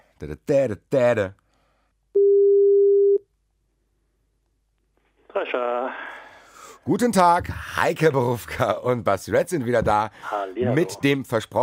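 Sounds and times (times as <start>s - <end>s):
speech: 0.2s - 1.4s, 5.4s - 6.2s, 6.8s - 11.6s
telephone call tone while dialing: 2.2s - 3.2s.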